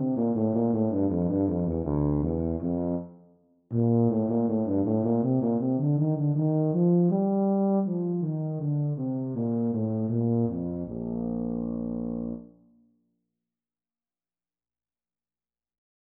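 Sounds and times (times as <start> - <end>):
Bb tuba duet: 0.0 - 12.5.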